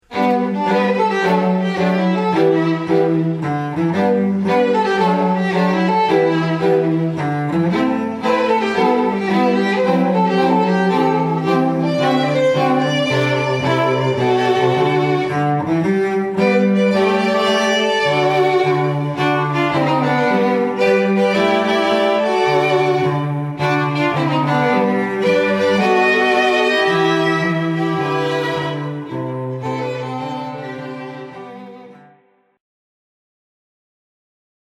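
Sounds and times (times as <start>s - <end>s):
strings: 0.0s - 32.5s.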